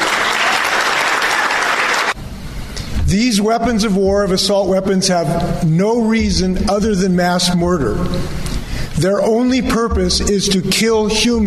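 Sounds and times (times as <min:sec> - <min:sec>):
crowd cheering and applauding: 0:00.0 - 0:02.2
speech: 0:03.1 - 0:08.4, 0:09.0 - 0:11.4.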